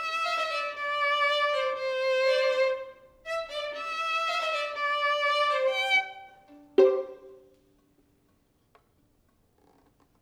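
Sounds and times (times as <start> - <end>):
violin: 0.0 - 7.6.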